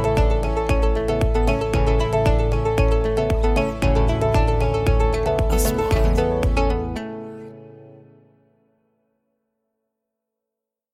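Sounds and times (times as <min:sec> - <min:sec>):
corporate music: 0:00.0 - 0:08.3.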